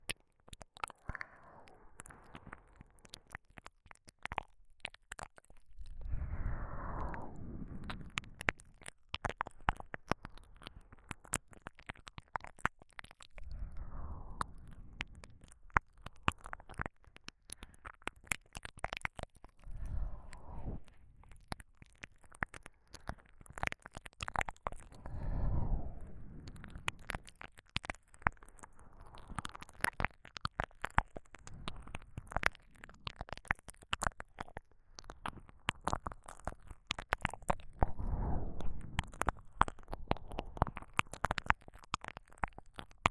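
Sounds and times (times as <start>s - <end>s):
licking sounds in the left ear: 0.0s - 43.0s.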